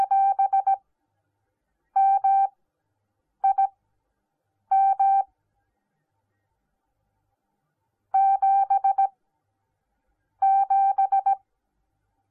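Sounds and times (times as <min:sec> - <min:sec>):
morse code beeps: 0:00.0 - 0:00.8, 0:02.0 - 0:02.5, 0:03.4 - 0:03.7, 0:04.7 - 0:05.2, 0:08.2 - 0:09.1, 0:10.4 - 0:11.4.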